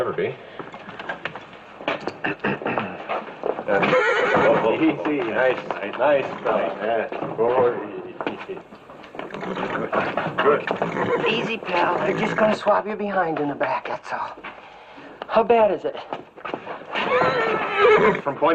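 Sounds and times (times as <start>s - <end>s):
horse hooves clopping: 0.0s - 18.5s
speech: 0.2s - 0.5s, 3.7s - 14.5s, 15.3s - 16.3s, 17.1s - 18.5s
horse neighing with a long wavering whinny: 2.1s - 4.8s, 9.2s - 12.7s, 16.8s - 18.5s.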